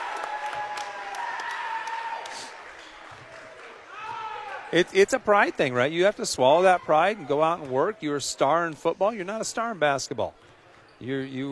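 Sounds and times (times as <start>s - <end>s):
crowd applause after a free throw: 0.0s - 4.8s
speech: 4.7s - 11.5s.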